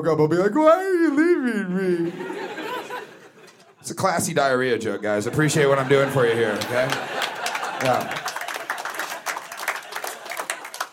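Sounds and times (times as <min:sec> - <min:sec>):
speech: 0:00.0 - 0:02.5, 0:03.8 - 0:08.3
laughter: 0:01.0 - 0:03.8, 0:05.2 - 0:10.9
audience applause after a joke: 0:05.8 - 0:10.9.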